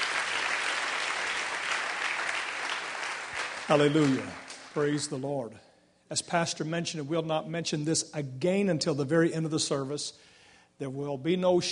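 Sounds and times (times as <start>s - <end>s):
audience applause: 0.0s - 5.0s
speech: 3.7s - 11.7s.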